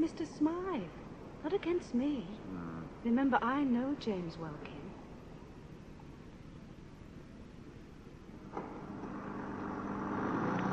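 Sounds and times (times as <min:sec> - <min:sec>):
speech: 0:00.0 - 0:04.9
vintage car engine running: 0:08.6 - 0:10.7.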